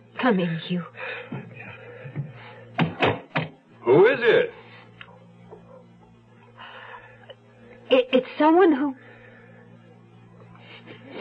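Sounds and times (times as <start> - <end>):
speech: 0.2 - 1.5, 3.9 - 4.6, 7.9 - 9.0
knocks on a door: 2.2 - 3.6.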